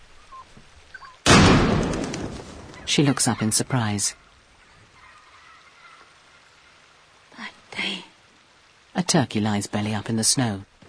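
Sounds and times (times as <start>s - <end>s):
rifle shot fired at turkeys in the snow: 1.3s - 2.5s
speech: 2.9s - 4.2s, 9.1s - 10.7s.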